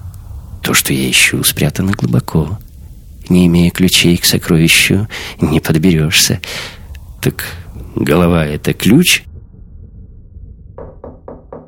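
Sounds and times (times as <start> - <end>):
steady low hiss: 0.0 - 9.3
speech: 0.8 - 2.7, 3.3 - 9.3
timid knocking on a door: 10.8 - 11.6.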